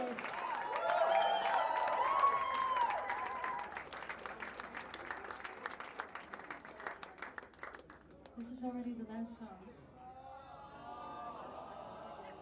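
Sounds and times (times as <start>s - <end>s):
loud crowd cheering: 0.0s - 7.7s, 10.2s - 12.3s
audience applause: 0.0s - 8.3s
speech: 8.4s - 9.7s.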